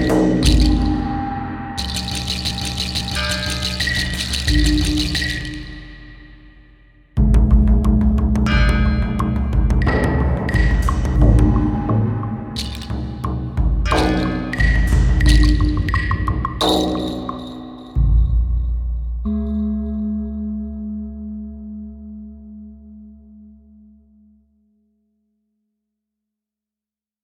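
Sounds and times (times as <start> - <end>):
shamanic percussion: 0.0 - 19.9.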